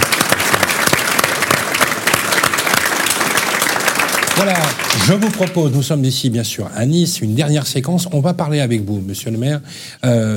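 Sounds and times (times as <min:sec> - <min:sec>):
audience applause: 0:00.0 - 0:06.0
speech: 0:04.4 - 0:10.3.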